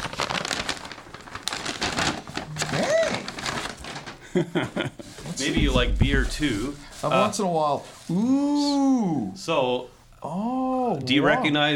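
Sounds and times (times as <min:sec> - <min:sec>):
gift wrapping crinkling as a present is opened: 0:00.0 - 0:04.3, 0:04.9 - 0:08.5
speech: 0:04.4 - 0:11.7.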